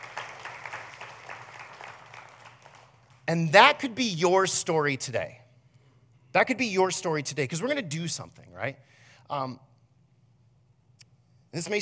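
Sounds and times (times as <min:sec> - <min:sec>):
audience applause: 0:00.0 - 0:03.2
speech: 0:03.3 - 0:05.4, 0:06.3 - 0:09.7, 0:11.5 - 0:11.8.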